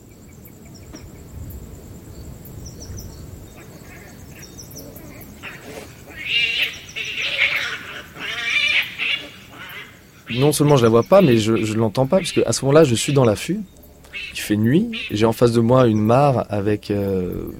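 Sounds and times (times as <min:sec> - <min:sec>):
steady night-time insect hum: 0:00.0 - 0:17.5
mongoose howling at night: 0:04.8 - 0:10.5
speech: 0:10.3 - 0:17.5.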